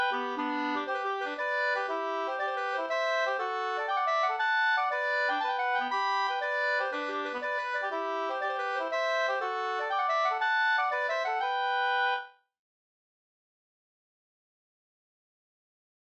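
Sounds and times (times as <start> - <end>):
two-part polska: 0.0 - 12.2.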